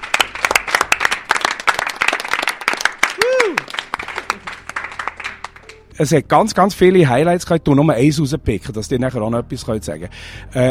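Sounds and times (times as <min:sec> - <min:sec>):
audience applause for the Radio Chico team: 0:00.0 - 0:05.9
speech: 0:06.0 - 0:10.7.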